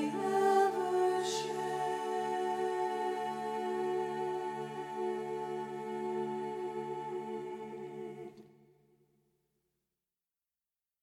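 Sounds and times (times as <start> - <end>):
alto voices in a mixed choir: 0.0 - 8.6.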